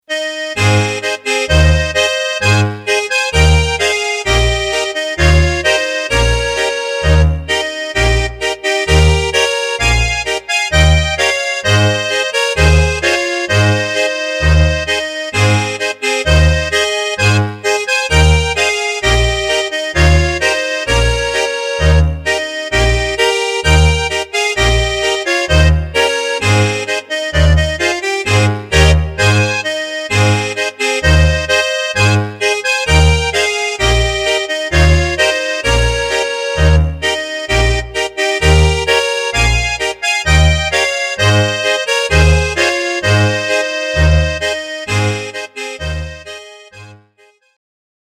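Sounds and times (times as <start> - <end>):
polka music: 0.0 - 47.4.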